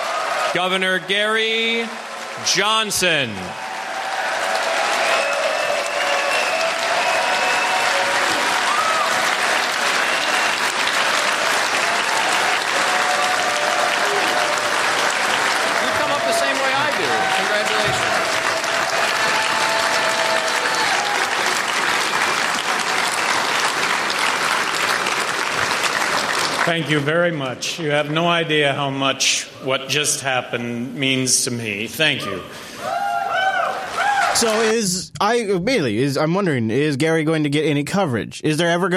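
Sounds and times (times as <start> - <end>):
audience applause for a nominee: 0.0 - 27.6, 32.9 - 35.0
speech: 0.5 - 3.6, 26.7 - 32.7, 34.4 - 38.9.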